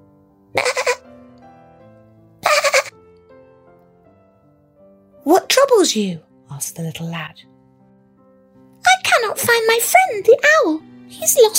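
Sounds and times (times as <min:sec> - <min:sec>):
distressed lamb bleating: 0:00.6 - 0:01.0
speech: 0:05.2 - 0:07.5, 0:09.4 - 0:11.5.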